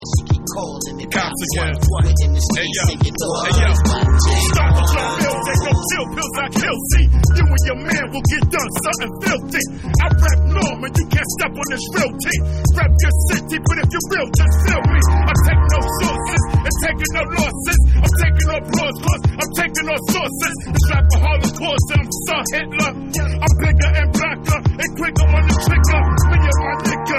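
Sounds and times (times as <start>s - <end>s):
vocals: 0.0s - 27.1s.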